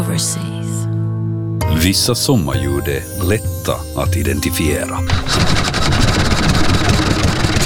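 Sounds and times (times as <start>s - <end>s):
speech: 0.2s - 0.9s, 1.8s - 6.1s
Olympia 3.5 horsepower engine running: 5.1s - 7.6s.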